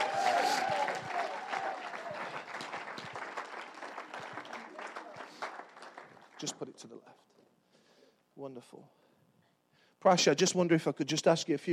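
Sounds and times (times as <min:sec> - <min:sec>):
audience applause welcoming a speaker to the stage: 0:00.0 - 0:06.5
speech: 0:06.4 - 0:07.3, 0:08.4 - 0:09.0, 0:10.0 - 0:11.7.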